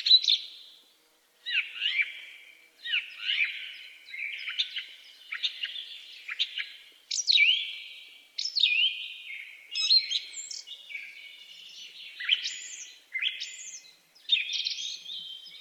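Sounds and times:
song thrush singing a twittering flourish and whistled phrases: 0:00.0 - 0:15.5.

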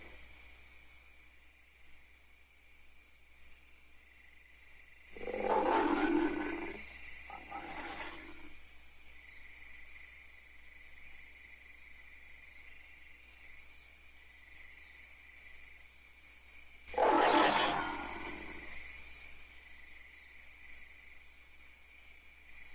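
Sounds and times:
ape letting out a low rough growl: 0:05.2 - 0:08.4, 0:16.9 - 0:18.7.

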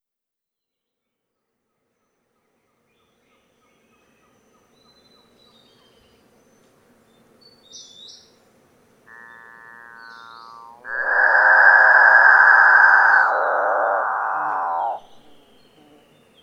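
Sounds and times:
Capuchinbird calling with mooing harmonic drones: 0:09.1 - 0:15.7.

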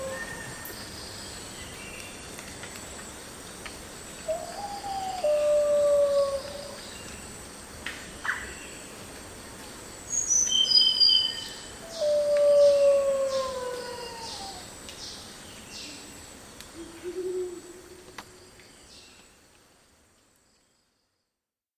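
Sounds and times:
black-hooded oriole calling: 0:04.2 - 0:06.8, 0:10.6 - 0:14.7, 0:16.7 - 0:18.2.

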